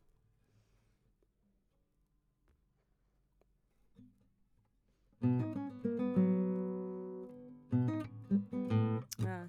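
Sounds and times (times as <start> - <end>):
guitar: 5.1 - 9.4.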